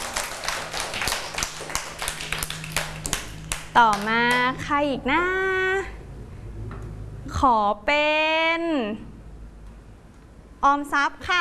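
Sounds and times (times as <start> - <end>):
children clapping hands: 0.0 - 4.6
speech: 3.8 - 6.0, 7.4 - 9.1, 10.6 - 11.3.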